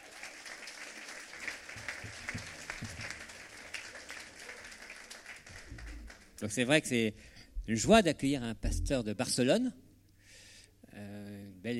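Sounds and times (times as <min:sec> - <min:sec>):
audience applause for a pastor: 0:00.0 - 0:06.4
speech: 0:06.4 - 0:09.8.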